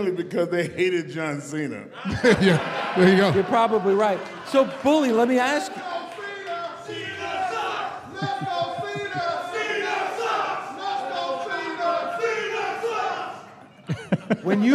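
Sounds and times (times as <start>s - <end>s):
speech: 0.0s - 6.0s, 14.3s - 14.7s
laughter: 1.9s - 14.7s
people shouting: 5.8s - 13.6s.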